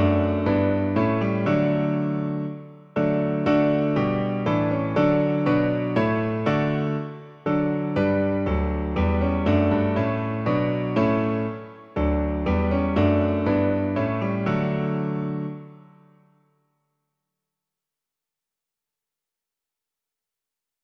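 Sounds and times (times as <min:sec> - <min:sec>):
piano: 0:00.0 - 0:16.6.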